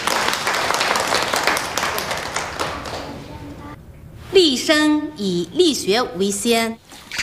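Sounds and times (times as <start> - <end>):
classroom applause: 0.0 - 3.2
speech: 4.4 - 6.8.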